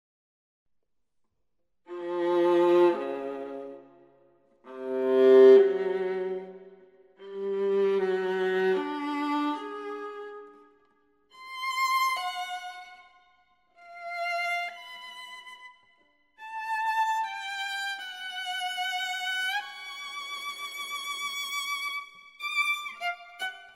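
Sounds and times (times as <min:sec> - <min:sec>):
viola: 0:01.9 - 0:23.7.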